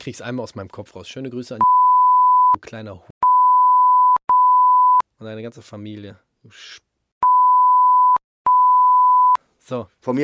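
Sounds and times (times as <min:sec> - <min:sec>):
speech: 0:00.0 - 0:01.9, 0:02.5 - 0:03.1, 0:05.2 - 0:06.9, 0:09.6 - 0:10.2
censor beep: 0:01.6 - 0:02.6, 0:03.2 - 0:05.0, 0:07.2 - 0:09.4.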